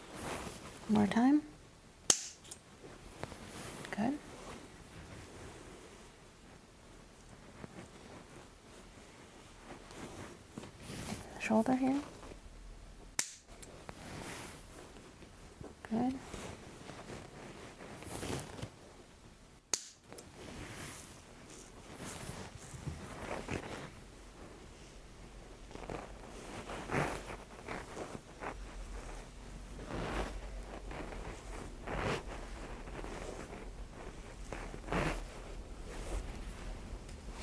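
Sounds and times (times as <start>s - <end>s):
soft rubbing and patting of osteo manipulation massage: 0.0s - 1.6s, 2.6s - 19.4s, 20.0s - 37.4s.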